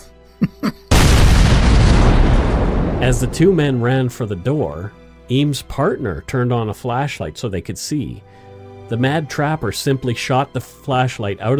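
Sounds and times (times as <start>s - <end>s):
dynamite explosion: 0.9s - 3.8s
speech: 3.0s - 11.5s.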